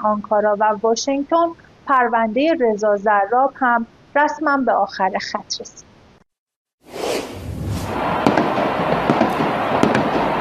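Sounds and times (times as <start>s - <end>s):
speech: 0.0s - 5.9s
whooshing bursts: 6.8s - 9.2s
fireworks crackling and popping at street celebration: 6.9s - 10.3s
sharp bangs: 7.1s - 10.3s
dense steady roar of a crowd: 7.6s - 10.3s.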